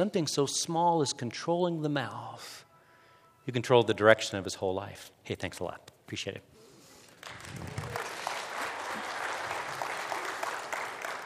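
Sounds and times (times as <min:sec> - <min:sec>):
speech: 0:00.0 - 0:02.7, 0:03.4 - 0:06.5
audience clapping: 0:07.0 - 0:11.2.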